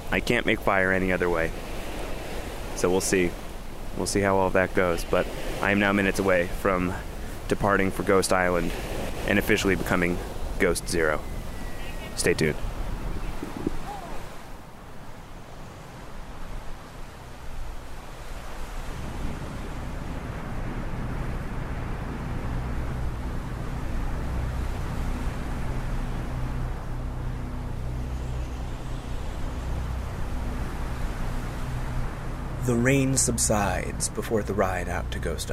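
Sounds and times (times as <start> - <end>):
speech: 0.1 - 1.7, 2.8 - 3.4, 4.0 - 11.3, 12.2 - 12.7, 32.9 - 35.5
strong wind during a boat ride: 8.6 - 34.1.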